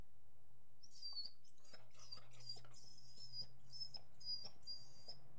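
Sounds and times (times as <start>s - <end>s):
beagle yelping and barking: 0.9s - 5.2s.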